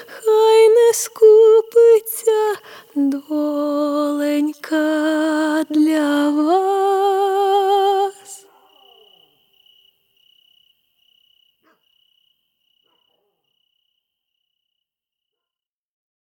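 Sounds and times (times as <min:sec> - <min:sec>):
a cappella lullaby singing: 0:00.0 - 0:08.5.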